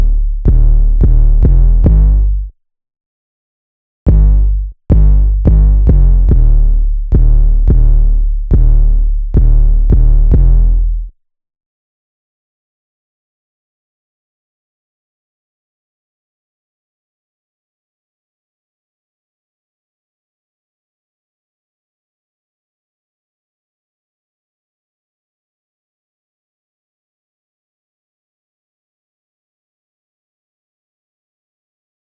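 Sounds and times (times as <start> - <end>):
bass: 0.0 - 2.6, 4.1 - 11.2.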